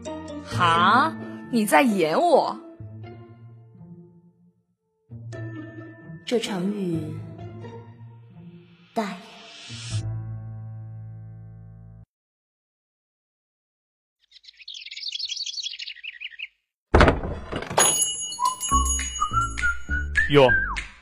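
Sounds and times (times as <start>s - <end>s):
speech: 0.6s - 2.7s, 6.3s - 7.2s, 9.0s - 9.8s, 20.3s - 20.7s
high fluttering chirp: 14.2s - 16.6s
door slamming shut: 16.9s - 18.0s
jangling ringing tones: 17.6s - 19.4s.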